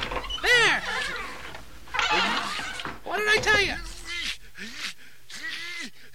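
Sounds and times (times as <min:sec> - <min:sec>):
creaking door being opened: 0:00.0 - 0:04.4.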